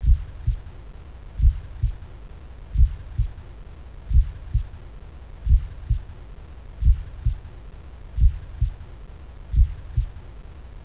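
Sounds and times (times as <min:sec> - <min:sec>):
sick heartbeat: 0:00.0 - 0:00.8, 0:01.4 - 0:02.1, 0:02.7 - 0:03.5, 0:04.1 - 0:04.8, 0:05.4 - 0:06.2, 0:06.8 - 0:08.9, 0:09.5 - 0:10.3.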